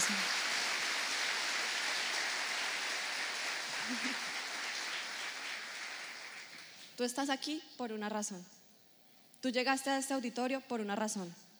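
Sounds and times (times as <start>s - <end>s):
audience applause: 0.0s - 6.8s
speech: 3.9s - 4.3s, 7.0s - 8.6s, 9.4s - 11.4s.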